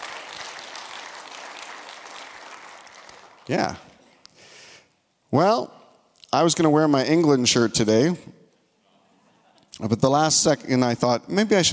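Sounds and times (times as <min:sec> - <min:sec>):
crowd clapping: 0:00.0 - 0:04.0
speech: 0:03.5 - 0:03.9, 0:05.3 - 0:08.4, 0:09.8 - 0:11.7.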